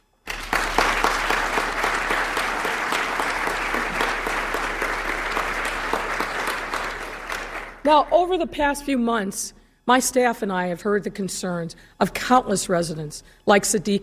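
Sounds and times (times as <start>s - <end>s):
audience applause: 0.2s - 7.9s
speech: 7.9s - 14.0s.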